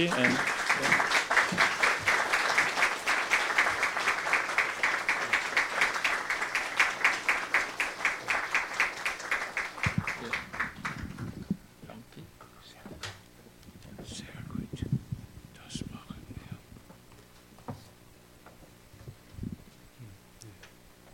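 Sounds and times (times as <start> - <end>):
audience applause welcoming two lecturers to a special lecture: 0.0 - 11.6.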